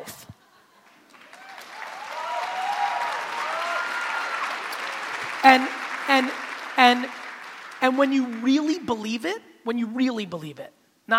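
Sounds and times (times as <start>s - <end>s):
audience applause: 0.8s - 8.8s
speech: 5.4s - 7.2s, 7.8s - 11.1s.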